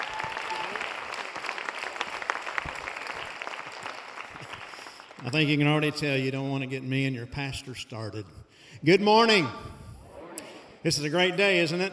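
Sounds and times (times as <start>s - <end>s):
church congregation applauding to welcome a guest speaker: 0.0s - 6.1s
speech: 5.2s - 9.7s, 10.8s - 11.9s.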